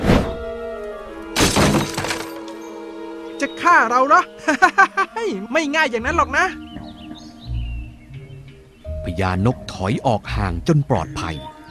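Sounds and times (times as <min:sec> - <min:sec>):
thrown wooden log smashing into a plate of beans: 0:01.4 - 0:02.4
shattering and clattering plate pieces: 0:01.4 - 0:02.6
speech: 0:03.4 - 0:06.7, 0:09.2 - 0:11.5
laughter: 0:04.4 - 0:05.5.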